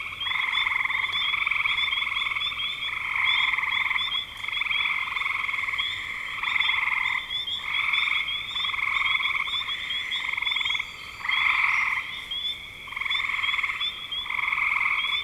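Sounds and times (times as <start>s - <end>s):
frog chorus trilling: 0.0s - 15.2s.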